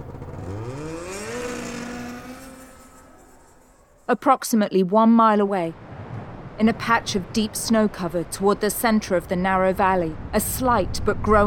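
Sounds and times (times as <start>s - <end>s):
snowmobile engine revving: 0.0s - 4.1s
speech: 4.1s - 5.8s, 6.6s - 11.4s.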